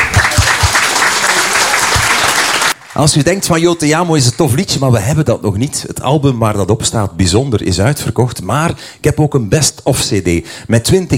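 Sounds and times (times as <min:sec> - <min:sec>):
applause: 0:00.0 - 0:04.4
speech: 0:03.0 - 0:11.1.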